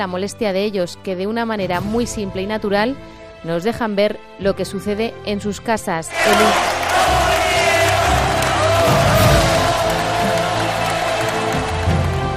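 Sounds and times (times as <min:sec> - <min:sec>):
speech: 0:00.0 - 0:06.9
crowd cheering and shouting: 0:06.1 - 0:12.3.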